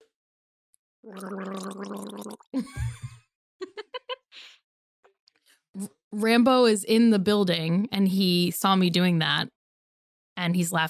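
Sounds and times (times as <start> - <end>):
person gargling: 1.0 - 2.6
speech: 1.0 - 3.1, 5.8 - 9.6, 10.4 - 10.8.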